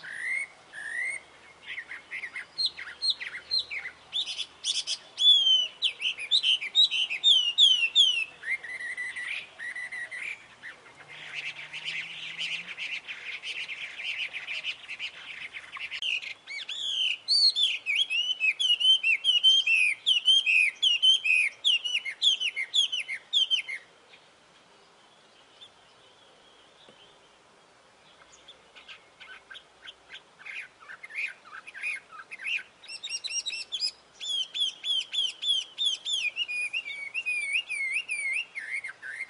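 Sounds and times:
Chinese hwamei singing whistles: 0:00.0 - 0:01.2, 0:01.8 - 0:10.4, 0:16.0 - 0:23.8, 0:28.9 - 0:39.2.

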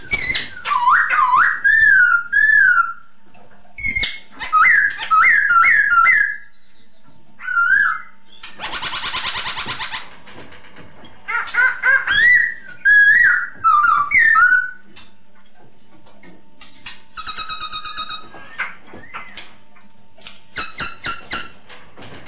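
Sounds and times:
masked laughingthrush whistled lure song: 0:00.0 - 0:03.1, 0:03.8 - 0:10.0, 0:11.4 - 0:14.9, 0:16.8 - 0:19.5, 0:20.5 - 0:21.6.

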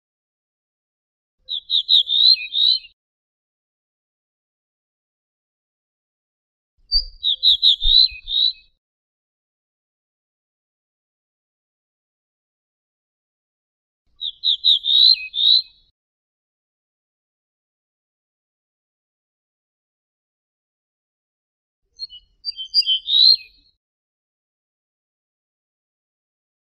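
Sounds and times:
Ortolan bunting singing: 0:01.5 - 0:03.0, 0:06.9 - 0:08.8, 0:14.2 - 0:15.8, 0:22.0 - 0:23.7.

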